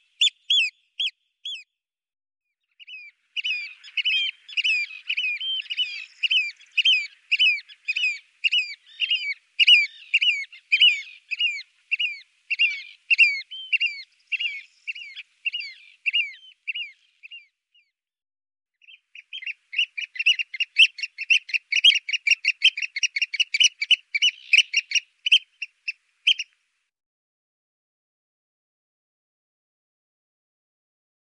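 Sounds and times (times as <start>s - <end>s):
oystercatcher calling: 0.0s - 1.6s, 2.8s - 17.5s, 18.8s - 26.6s.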